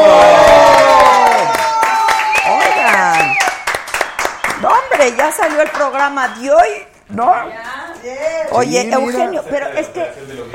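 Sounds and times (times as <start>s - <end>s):
loud whooping, cheering voices: 0.0s - 5.0s
rapid, irregular hand clapping: 0.8s - 6.4s
speech: 5.8s - 10.5s.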